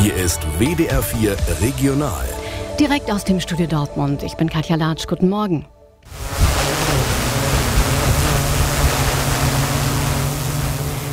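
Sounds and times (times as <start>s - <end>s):
speech: 0.1s - 6.3s
autonomous drone flying: 6.1s - 11.1s.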